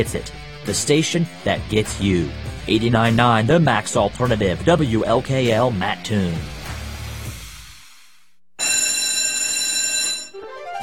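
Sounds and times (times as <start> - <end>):
speech: 0.0 - 6.5
electric school bell ringing: 8.6 - 10.8.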